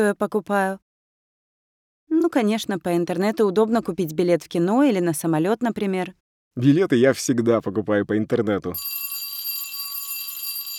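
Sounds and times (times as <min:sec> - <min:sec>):
speech: 0:00.0 - 0:00.8, 0:02.1 - 0:09.0
school bell ringing for class: 0:08.8 - 0:10.7.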